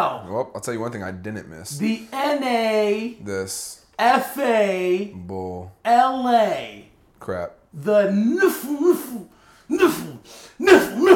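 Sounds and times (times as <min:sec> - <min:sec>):
speech: 0:00.0 - 0:11.1
person making loud voiced sneeze-like bursts: 0:08.2 - 0:11.1.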